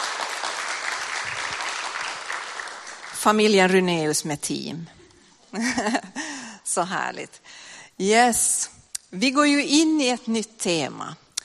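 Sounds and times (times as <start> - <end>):
audience applause: 0.0 - 3.2
speech: 3.2 - 11.2.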